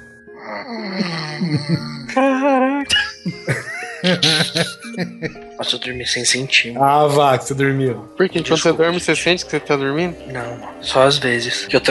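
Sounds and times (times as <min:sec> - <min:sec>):
speech: 0:00.4 - 0:02.3, 0:03.2 - 0:11.9
person imitating a cat meow: 0:00.6 - 0:03.3
laughter: 0:01.0 - 0:07.5.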